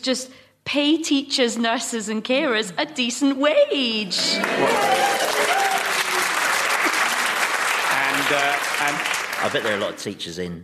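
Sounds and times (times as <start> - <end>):
speech: 0.0 - 5.3, 8.3 - 10.6
crowd applauding: 4.2 - 10.1.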